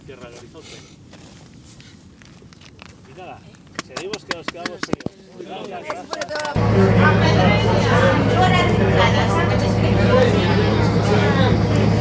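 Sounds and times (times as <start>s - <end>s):
speech: 0.1s - 1.4s, 3.2s - 7.5s
motorboat engine starting up: 6.6s - 11.9s.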